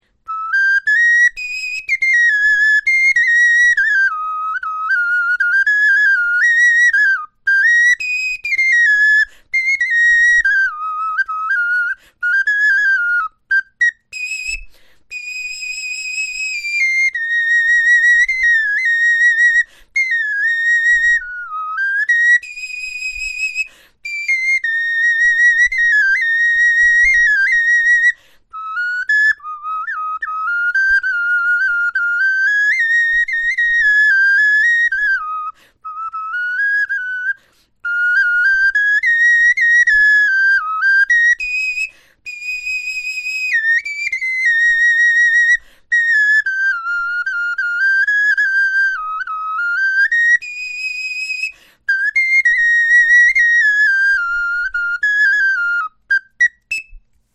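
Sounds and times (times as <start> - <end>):
bone flute melody: 0.2 - 57.1.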